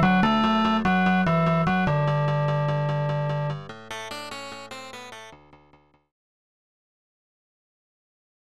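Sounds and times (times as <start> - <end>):
background music: 0.0 - 6.0.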